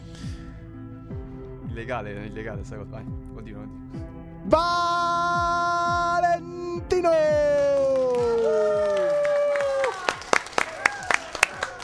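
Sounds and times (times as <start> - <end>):
speech: 1.8 - 5.5, 7.0 - 7.6
applause from control room: 7.6 - 11.8
cheering from control room: 7.8 - 11.8.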